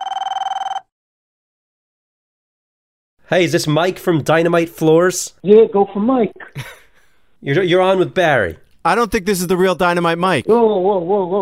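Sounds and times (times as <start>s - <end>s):
telephone ringing for a call to Dynamite Floors: 0.0s - 0.9s
speech: 3.3s - 6.8s, 7.4s - 11.3s.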